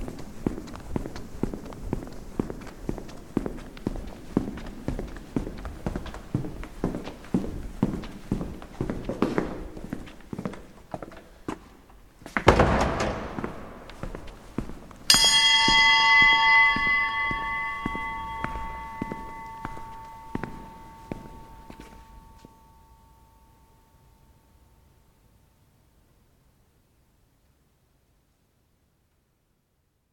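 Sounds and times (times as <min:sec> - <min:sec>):
footsteps: 0:00.0 - 0:23.0
bell: 0:15.1 - 0:25.1.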